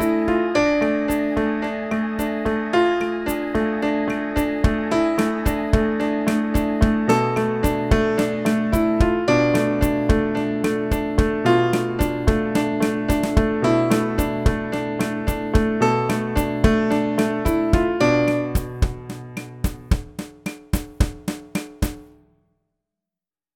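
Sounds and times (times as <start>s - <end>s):
piano: 0.0s - 21.4s
drums: 4.4s - 22.2s.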